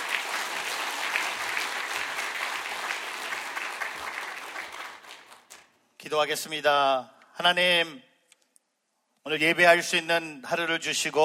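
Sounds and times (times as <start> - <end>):
crowd applauding: 0.0 - 5.8
speech: 6.1 - 8.1, 9.2 - 11.2.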